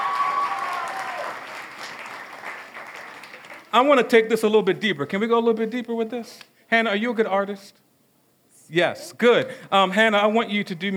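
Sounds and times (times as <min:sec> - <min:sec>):
crowd applauding: 0:00.0 - 0:03.8
speech: 0:03.7 - 0:07.8, 0:08.7 - 0:10.9.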